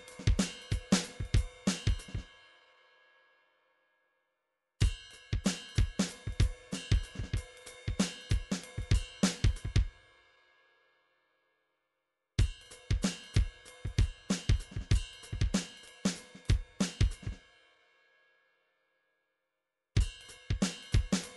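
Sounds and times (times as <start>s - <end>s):
MIDI drums: 0.0s - 2.2s, 4.8s - 9.9s, 12.4s - 17.4s, 20.0s - 21.3s.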